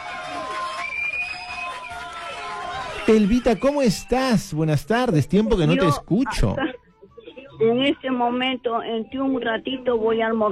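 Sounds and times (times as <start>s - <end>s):
crowd applause and cheering: 0.0s - 5.4s
shrill whistles: 0.6s - 4.1s
speech: 3.1s - 6.7s, 7.6s - 10.4s.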